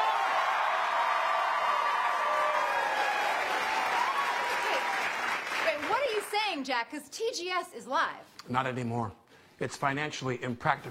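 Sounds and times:
studio audience applauding and cheering: 0.0 - 6.5
speech: 6.6 - 10.8.

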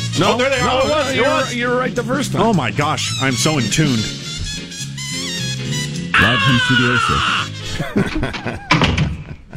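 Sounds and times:
speech: 0.2 - 4.3, 6.2 - 9.0
door opening sound effect: 4.1 - 4.8, 8.1 - 9.4
laughter: 6.2 - 9.5.

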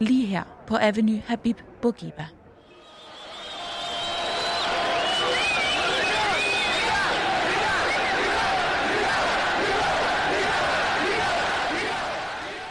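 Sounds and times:
speech: 0.0 - 2.4
protest crowd shouting on a street: 2.7 - 12.6.

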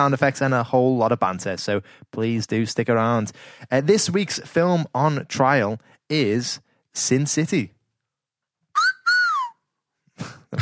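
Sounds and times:
speech: 0.0 - 7.8, 10.2 - 10.6
loud two-note catcall whistle: 8.7 - 9.7.

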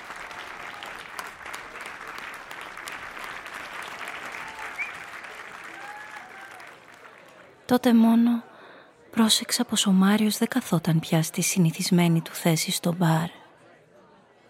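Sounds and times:
prolonged audience applause: 0.0 - 7.6
speech: 7.7 - 8.5, 9.2 - 13.4.

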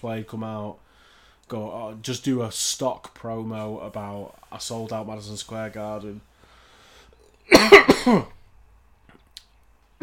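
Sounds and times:
speech: 0.0 - 0.9, 1.5 - 6.3, 7.5 - 8.4
person coughing after water went down wrong way: 7.5 - 8.4.

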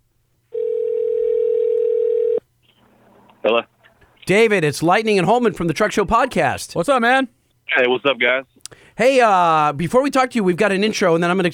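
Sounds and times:
telephone dial tone: 0.5 - 2.4
speech: 4.3 - 11.5.

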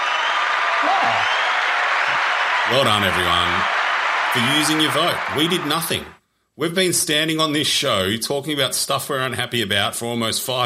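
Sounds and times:
canned applause from a sound-effect button: 0.0 - 6.2
speech: 0.8 - 1.4, 2.1 - 3.8, 4.4 - 10.6.

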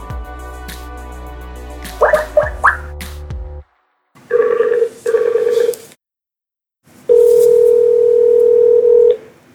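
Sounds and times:
telephone dialing: 4.3 - 5.7, 7.7 - 9.2
telephone ringing: 4.3 - 5.8, 7.1 - 9.3.

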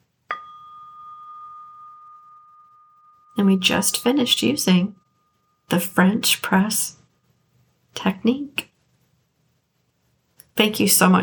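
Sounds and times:
bell ringing: 0.3 - 6.3
speech: 3.4 - 5.0, 5.7 - 7.0, 8.0 - 8.7, 10.6 - 11.2.

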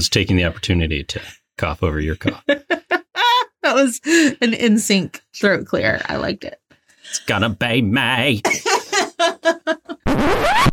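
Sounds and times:
speech: 0.0 - 3.0, 3.6 - 9.8
laughter: 2.1 - 3.7, 8.1 - 10.0
fart: 10.1 - 10.7.

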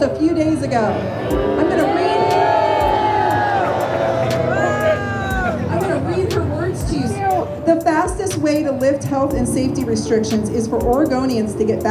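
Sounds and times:
speech: 0.0 - 1.9, 6.0 - 11.9
protest crowd shouting and cheering: 0.0 - 8.2.

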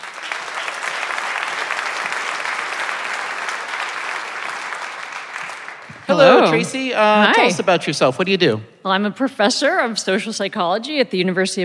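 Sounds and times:
audience applauding a guest welcomed onto a stage: 0.0 - 7.6
speech: 6.1 - 11.6.

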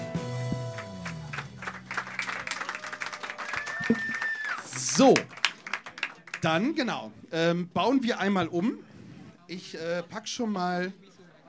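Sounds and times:
audience applause: 0.6 - 6.7
speech: 3.9 - 4.2, 4.8 - 5.4, 6.4 - 8.9, 9.5 - 11.0.

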